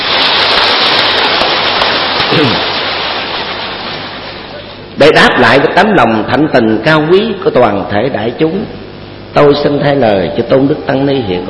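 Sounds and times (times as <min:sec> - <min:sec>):
audience applause: 0:00.0 - 0:04.2
speech: 0:02.4 - 0:02.7, 0:05.0 - 0:08.8, 0:09.4 - 0:11.4.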